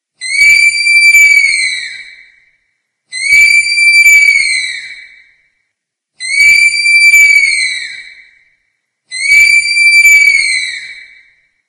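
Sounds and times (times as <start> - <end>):
sloth call: 0.2 - 2.4, 3.1 - 5.3, 6.2 - 8.4, 9.1 - 11.3.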